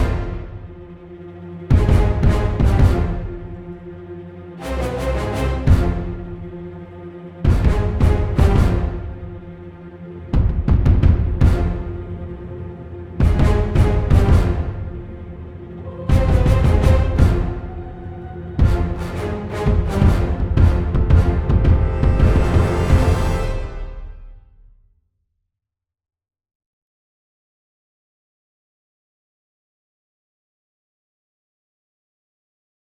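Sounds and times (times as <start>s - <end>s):
orchestra: 0.0s - 24.7s.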